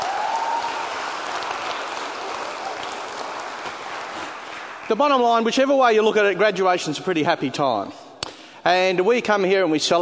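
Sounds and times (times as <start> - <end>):
audience applause at graduation ceremony: 0.0 - 5.2
speech: 4.9 - 8.0, 8.6 - 10.0.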